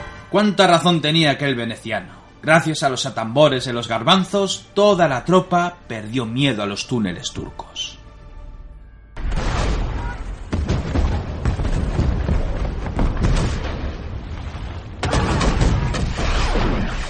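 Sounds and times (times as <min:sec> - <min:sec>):
speech: 0:00.3 - 0:08.0
Turkish artillery bombardment pounding fortress bastions during a siege: 0:09.2 - 0:17.0.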